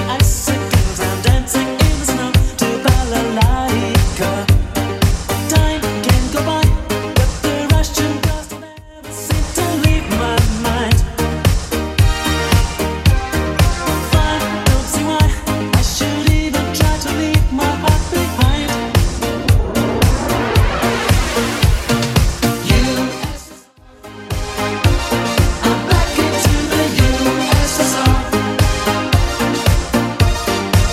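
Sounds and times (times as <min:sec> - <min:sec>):
eighties drum beat at 112 bpm: 0:00.1 - 0:08.5, 0:09.3 - 0:23.5, 0:24.3 - 0:30.9.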